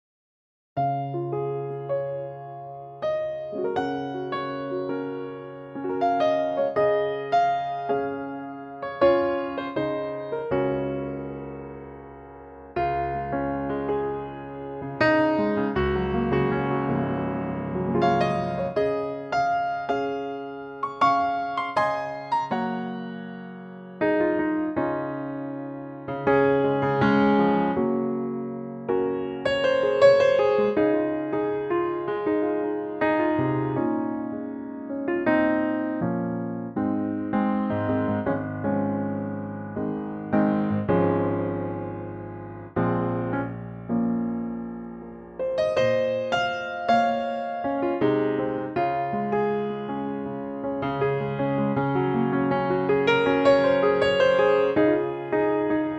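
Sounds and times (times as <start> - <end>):
piano in D-flat: 0.8 - 55.9.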